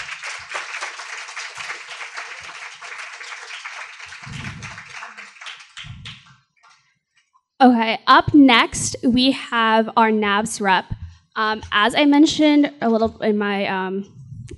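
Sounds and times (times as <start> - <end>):
audience round of applause: 0.0 - 6.3
speech: 7.6 - 14.2.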